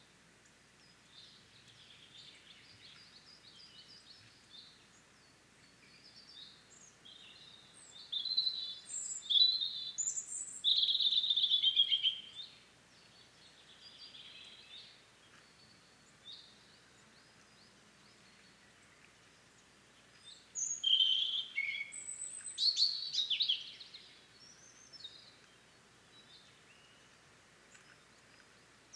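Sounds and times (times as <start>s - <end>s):
European robin singing: 6.0s - 17.0s, 20.2s - 27.1s.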